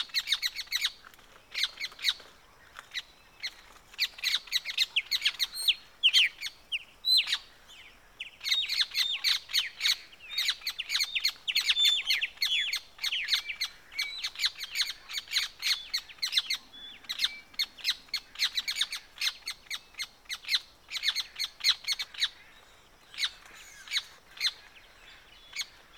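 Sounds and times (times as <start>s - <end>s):
evening birdsong in the Pantanal swamp: 0.0s - 25.9s.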